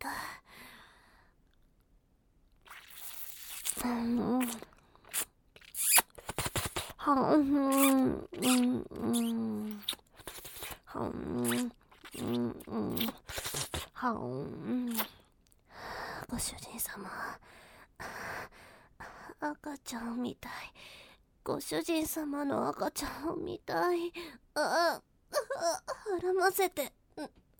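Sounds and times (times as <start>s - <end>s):
ear licking: 2.6s - 7.0s, 7.7s - 10.8s, 11.4s - 13.9s
speech: 3.8s - 4.7s, 7.1s - 10.0s, 11.0s - 13.2s, 14.0s - 15.1s, 16.3s - 17.6s, 19.4s - 27.4s.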